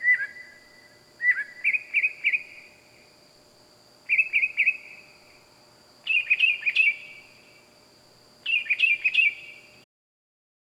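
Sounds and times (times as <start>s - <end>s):
bird calling at night in the wild: 0.0s - 2.6s, 4.1s - 5.0s, 6.0s - 7.2s, 8.4s - 9.6s.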